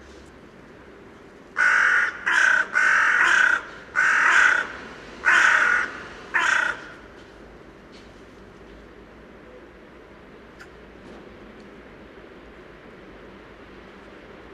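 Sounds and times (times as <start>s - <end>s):
carrion crow Corvus corone giving rough caws: 1.6s - 7.1s.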